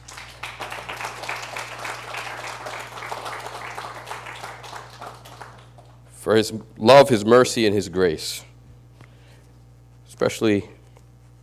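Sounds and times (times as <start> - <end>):
audience clapping: 0.0 - 6.1
speech: 6.2 - 8.5, 10.2 - 10.8.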